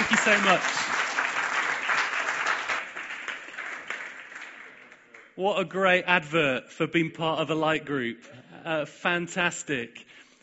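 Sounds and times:
audience cheering: 0.0 - 4.8
speech: 0.2 - 0.8, 5.4 - 10.2.

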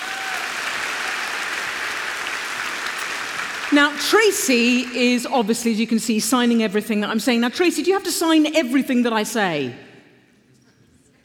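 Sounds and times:
crowd clapping: 0.0 - 5.0
speech: 3.7 - 9.8.

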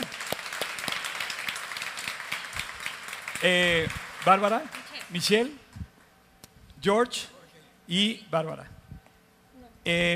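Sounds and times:
audience applause: 0.0 - 5.4
speech: 3.4 - 5.6, 6.8 - 7.3, 7.9 - 8.8, 9.8 - 10.1.

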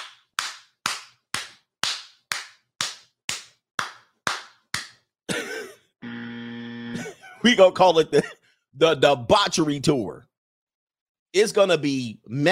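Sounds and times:
hand clapping: 0.0 - 5.1
sustained buzzing tone: 6.0 - 7.0
laughter: 7.0 - 8.4
speech: 7.0 - 10.3, 11.3 - 12.5.

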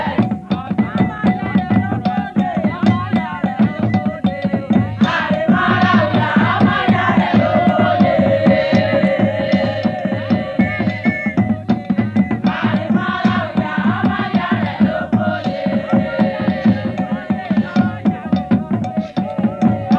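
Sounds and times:
group singing: 0.0 - 19.9
talking drums beating: 0.0 - 19.9
whistles: 2.6 - 5.1, 8.2 - 13.3, 18.8 - 19.9.

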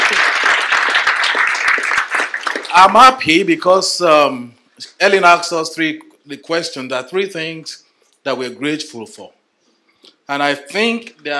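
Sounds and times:
audience applause: 0.0 - 3.0
speech: 2.8 - 9.4, 10.3 - 11.3.

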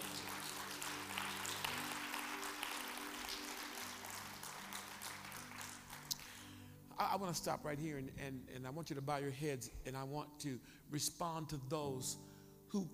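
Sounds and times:
audience clapping: 0.0 - 6.5
speech: 7.0 - 12.9.

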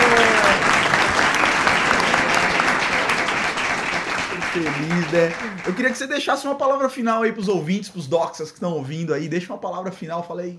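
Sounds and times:
applause: 0.0 - 6.2
speech: 4.6 - 10.5.

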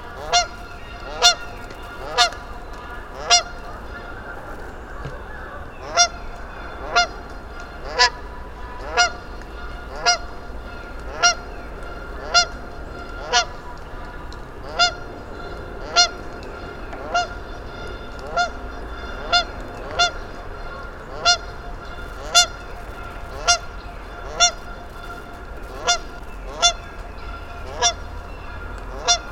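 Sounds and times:
goose honking: 0.0 - 29.2.

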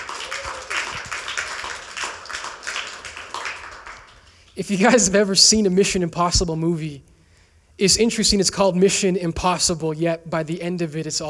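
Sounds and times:
audience clapping: 0.0 - 5.2
speech: 4.6 - 7.1, 7.8 - 11.2.

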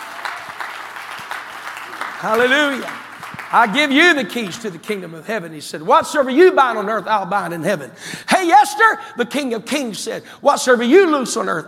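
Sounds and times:
audience clapping hands: 0.0 - 4.8
speech: 2.2 - 11.6.

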